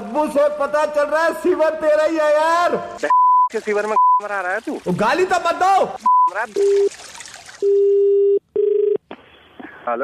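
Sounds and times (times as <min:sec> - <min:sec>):
speech: 0:00.2 - 0:07.0, 0:09.9 - 0:10.0
telephone dialing tones: 0:07.6 - 0:09.0.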